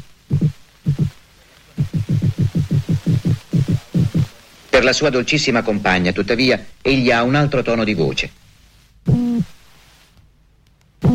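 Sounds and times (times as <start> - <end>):
toadfish drum-roll-like nesting call: 0.0 - 5.2, 9.1 - 9.6
speech: 4.8 - 8.4.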